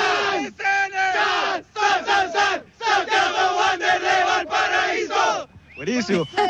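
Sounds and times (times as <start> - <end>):
fans shouting a group chant: 0.0 - 5.5
speech: 5.8 - 6.4.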